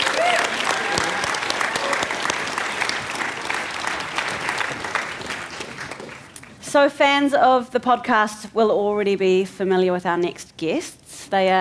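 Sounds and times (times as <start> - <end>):
audience applause: 0.0 - 6.6
speech: 6.8 - 11.5.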